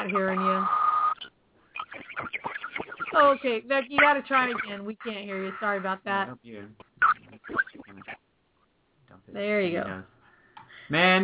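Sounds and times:
distorted garbled phone line audio: 0:00.0 - 0:08.2
speech: 0:00.1 - 0:00.8, 0:03.2 - 0:06.8, 0:09.4 - 0:10.2, 0:10.9 - 0:11.2.

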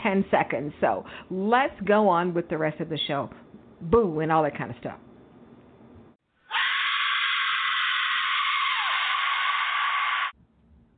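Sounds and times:
speech: 0:00.1 - 0:05.0
shrill scream: 0:06.4 - 0:10.4.

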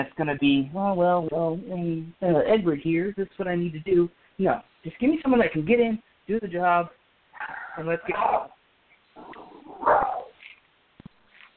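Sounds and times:
speech: 0:00.0 - 0:08.6
dog barking: 0:09.2 - 0:10.4.

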